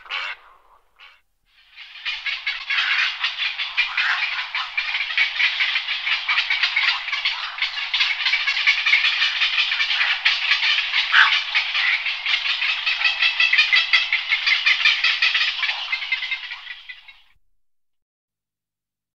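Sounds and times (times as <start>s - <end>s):
little egret giving harsh rasping croaks: 0.0s - 17.3s.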